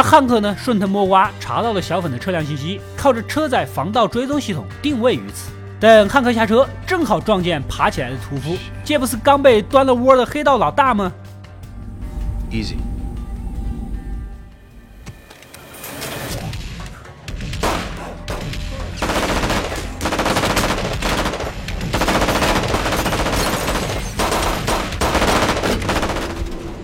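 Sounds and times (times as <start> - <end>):
speech: 0.1 - 11.2, 12.5 - 12.9
pistol gunshots in the Breaking Bad drama: 17.5 - 26.6.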